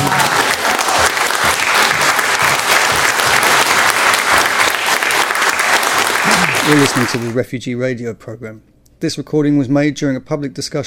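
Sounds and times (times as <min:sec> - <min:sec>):
audience applause: 0:00.0 - 0:07.4
speech: 0:06.7 - 0:10.8.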